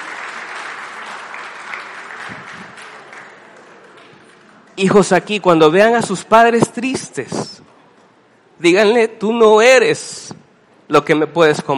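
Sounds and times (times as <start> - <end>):
crowd applause: 0.0 - 4.8
speech: 4.8 - 7.7, 8.6 - 11.7.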